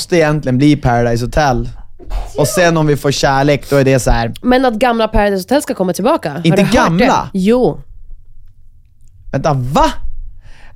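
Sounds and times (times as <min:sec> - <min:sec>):
speech: 0:00.1 - 0:07.9, 0:09.3 - 0:10.0
sneeze: 0:02.0 - 0:02.7.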